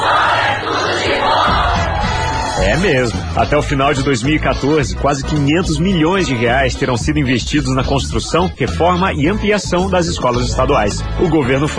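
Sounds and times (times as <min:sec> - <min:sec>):
crowd of kids cheering: 0:00.0 - 0:03.7
speech: 0:02.7 - 0:11.7.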